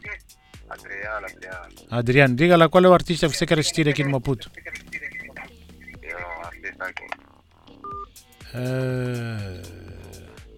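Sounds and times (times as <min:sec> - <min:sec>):
speech: 0:00.3 - 0:04.8, 0:08.5 - 0:09.9
buzzy sustained telephone tone: 0:07.2 - 0:08.1
touch-tone beep of a telephone number being dialed: 0:07.8 - 0:08.1.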